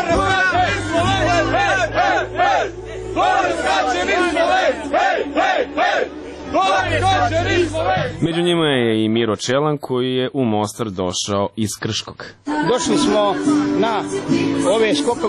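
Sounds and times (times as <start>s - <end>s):
crowd roar at the Mostar bridge diving event: 0.0s - 8.2s
Slovenian fans chanting at the Mostar bridge diving event: 0.0s - 8.4s
speech: 3.2s - 15.2s.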